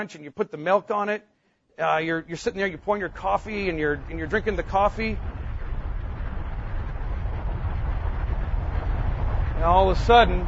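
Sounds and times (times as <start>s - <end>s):
speech: 0.0s - 5.4s, 9.6s - 10.4s
rumbling, rushing wind: 2.1s - 10.4s.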